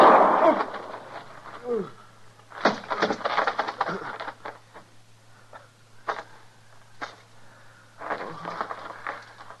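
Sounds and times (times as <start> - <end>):
gunshot in a Gunsmoke western radio drama: 0.0 - 1.2
low hum: 0.0 - 9.5.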